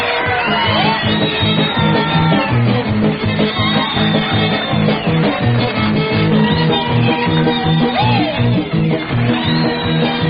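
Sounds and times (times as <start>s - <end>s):
fiddle instrumental: 0.1s - 10.2s.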